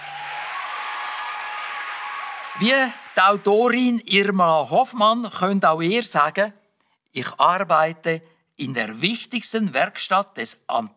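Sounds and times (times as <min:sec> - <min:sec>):
audience applause: 0:00.0 - 0:03.8
speech: 0:02.6 - 0:10.9.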